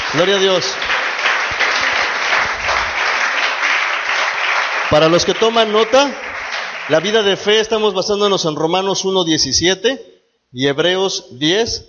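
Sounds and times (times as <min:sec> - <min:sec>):
audience applauding: 0:00.0 - 0:07.9
speech: 0:00.1 - 0:01.0, 0:04.9 - 0:06.3, 0:06.9 - 0:11.8.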